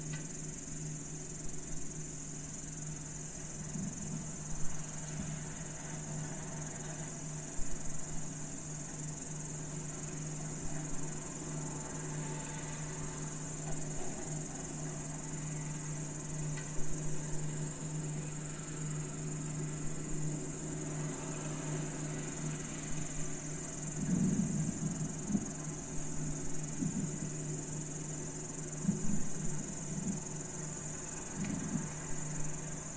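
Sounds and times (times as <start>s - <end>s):
crickets chirping: 0.0s - 32.9s.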